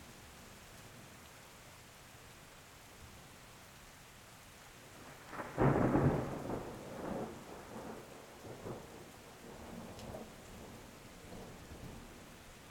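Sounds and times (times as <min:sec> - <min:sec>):
storm: 0:05.0 - 0:12.3.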